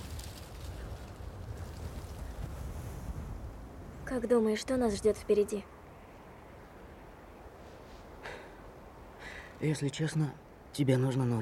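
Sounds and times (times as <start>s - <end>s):
steady wind rushing across a microphone by the water: 0.0s - 8.2s
speech: 4.1s - 5.7s, 9.6s - 11.4s.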